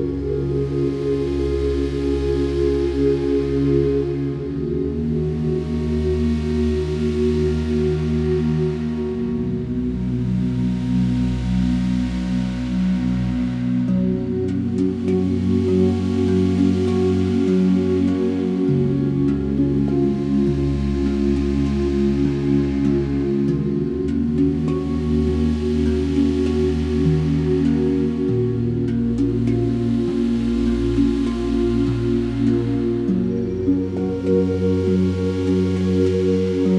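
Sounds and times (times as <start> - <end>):
summer rain melody background music for meditation and yoga: 0.0 - 36.7.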